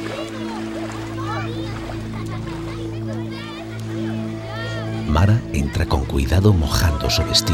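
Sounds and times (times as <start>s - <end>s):
children splashing and playing in water: 0.0s - 5.1s
speech: 5.1s - 7.5s.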